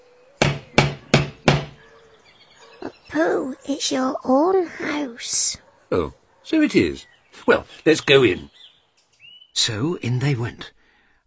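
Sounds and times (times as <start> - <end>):
firm knocks on a door: 0.4 - 1.8
speech: 3.1 - 8.6, 9.6 - 11.2.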